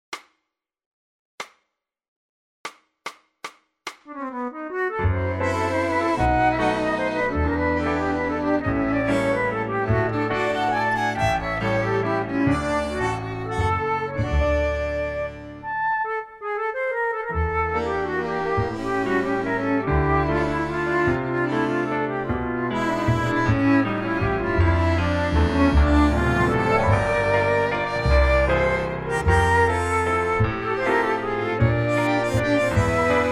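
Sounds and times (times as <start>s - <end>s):
flute playing in D: 4.1s - 33.3s.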